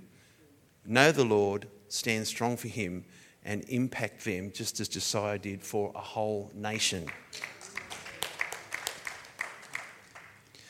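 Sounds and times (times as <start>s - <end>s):
speech: 0.9s - 7.6s
scattered audience applause: 7.0s - 10.6s.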